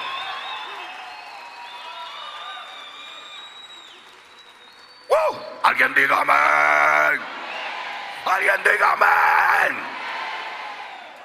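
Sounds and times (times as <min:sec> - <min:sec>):
audience applauding in victory: 0:00.0 - 0:06.0, 0:09.6 - 0:11.2
crowd shouting and cheering: 0:00.0 - 0:11.2
speech: 0:05.3 - 0:07.4, 0:08.2 - 0:10.0.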